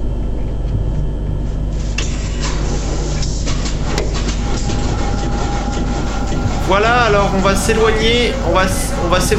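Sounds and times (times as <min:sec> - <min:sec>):
faint mechanical whine: 0:00.0 - 0:09.3
salvaged U-boat diesel engine running: 0:01.9 - 0:09.3
speech: 0:06.7 - 0:09.3.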